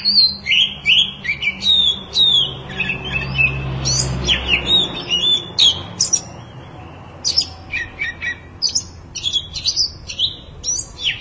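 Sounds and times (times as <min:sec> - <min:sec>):
oriental magpie-robin singing: 0:00.0 - 0:11.1.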